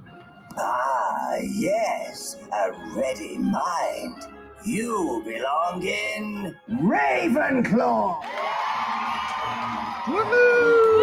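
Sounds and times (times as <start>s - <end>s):
speech: 0.6s - 8.6s, 10.1s - 10.9s
cheering: 8.2s - 11.0s.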